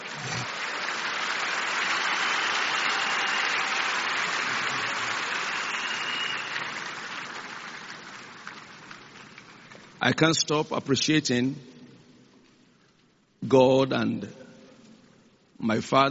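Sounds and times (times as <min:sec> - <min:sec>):
crowd clapping: 0:00.0 - 0:10.0
speech: 0:10.0 - 0:11.7, 0:13.5 - 0:14.4, 0:15.6 - 0:16.1.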